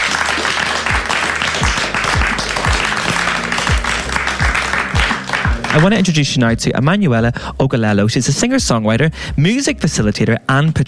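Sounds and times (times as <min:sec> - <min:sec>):
audience applause: 0:00.0 - 0:06.1
speech: 0:05.7 - 0:10.8.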